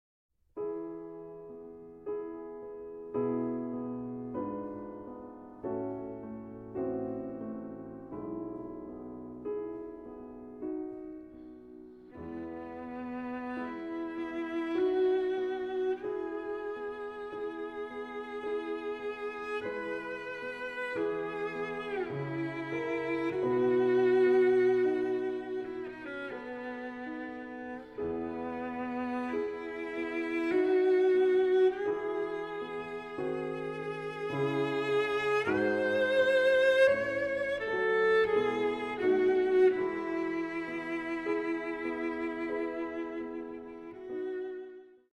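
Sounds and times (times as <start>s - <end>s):
sonata adagio movement in A minor: 0.6s - 45.1s.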